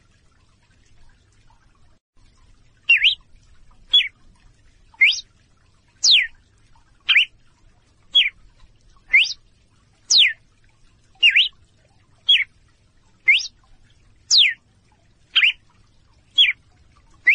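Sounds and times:
female red-cowled cardinal calling in clear short whistles: 2.9 - 3.2, 5.0 - 5.2, 6.0 - 6.3, 7.1 - 7.3, 9.1 - 9.4, 10.1 - 10.4, 11.2 - 11.5, 12.3 - 12.5, 13.3 - 13.5, 14.3 - 14.6, 15.4 - 15.6, 16.4 - 16.6.

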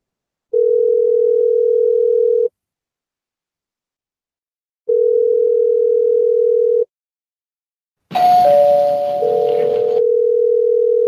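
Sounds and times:
telephone ringback tones: 0.5 - 2.5, 4.9 - 6.9, 8.1 - 11.0.

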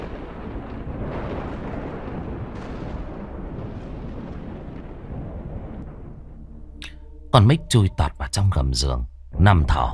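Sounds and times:
loud thunderclap from lightning strike: 0.0 - 6.3
speech: 7.3 - 9.9.

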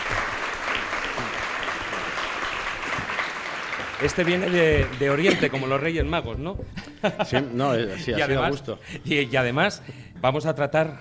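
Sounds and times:
applause: 0.0 - 5.9
speech: 4.0 - 10.9
laughter: 4.8 - 6.1, 6.8 - 8.8.

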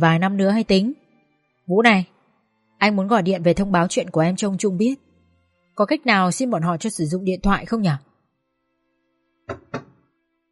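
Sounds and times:
speech: 0.0 - 1.0, 1.7 - 2.1, 2.8 - 5.1, 5.8 - 8.1
knocking on a door: 9.5 - 10.0.

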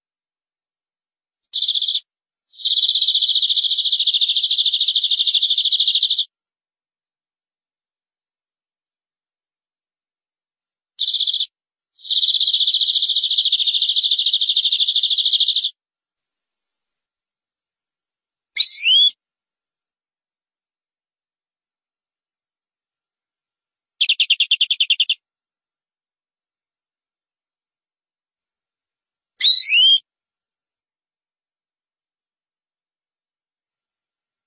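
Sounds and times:
canary trilling: 1.6 - 2.0, 2.6 - 6.3, 11.0 - 15.7, 18.6 - 19.1, 24.0 - 25.2, 29.4 - 30.0.

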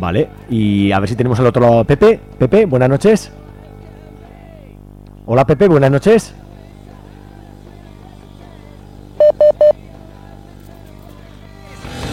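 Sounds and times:
speech: 0.0 - 3.4, 5.3 - 6.4
telephone keypad dialing beeps: 9.2 - 9.8.

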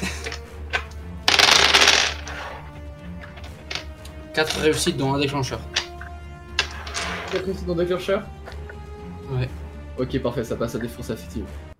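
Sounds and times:
dice being gathered: 0.2 - 2.6, 3.2 - 4.8, 5.6 - 7.4
handful of dice tumbling across a hard surface: 0.2 - 4.8, 5.6 - 7.5
speech: 4.4 - 5.8, 7.3 - 8.4, 9.4 - 11.7.

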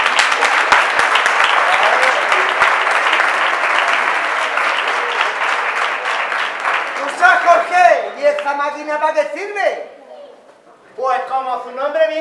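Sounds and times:
audience applause at a carnival comedy show: 0.0 - 8.5
speech: 8.6 - 10.0, 11.0 - 12.1.

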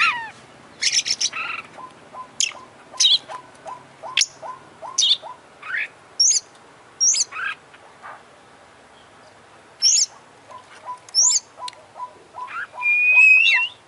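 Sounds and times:
Oriental magpie-robin singing clear whistles, high chips and buzzy slurs: 0.8 - 6.4, 10.9 - 13.8.

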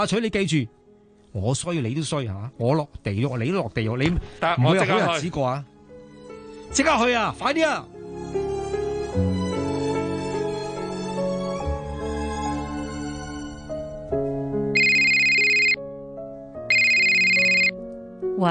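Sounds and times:
speech: 0.0 - 5.7, 6.7 - 8.4
steady melody: 0.0 - 18.5
telephone ringing with loud high buzzing bursts: 14.8 - 15.8, 16.7 - 17.7.

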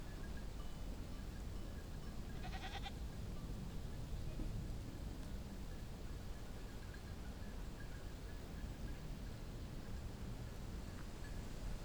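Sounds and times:
faint bells clinking: 0.0 - 4.2, 5.4 - 11.8
goat bleating: 2.4 - 2.9.

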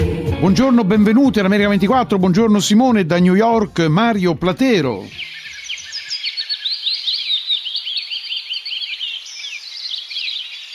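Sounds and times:
speech: 0.4 - 5.4
chorus of birds chirping: 2.2 - 10.7.

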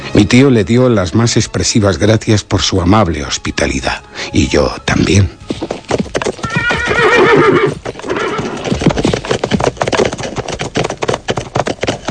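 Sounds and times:
speech: 0.2 - 6.1
horse hooves clip-clopping: 4.4 - 12.0
horse neighing as riders mount up: 5.6 - 9.5.

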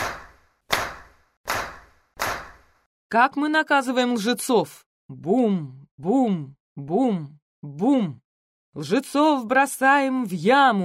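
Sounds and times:
crowd clapping hands in unison: 0.0 - 2.8
speech: 3.1 - 10.8.

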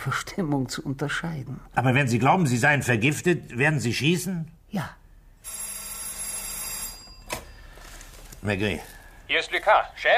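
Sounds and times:
speech: 0.0 - 5.6, 8.4 - 10.1
old-fashioned telephone bell ringing in a bright metallic rattle: 5.4 - 8.3.

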